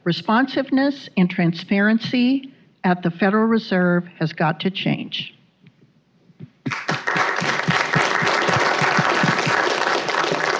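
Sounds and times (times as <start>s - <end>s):
speech: 0.0s - 5.4s
crowd audience applause: 6.7s - 10.5s.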